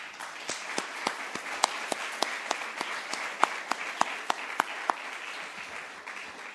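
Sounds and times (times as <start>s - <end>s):
audience applause: 0.0s - 6.5s.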